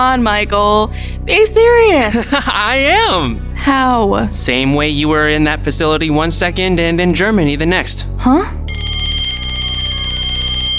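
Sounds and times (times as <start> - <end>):
speech: 0.0 - 8.6
first period school bell ringing: 8.7 - 10.7.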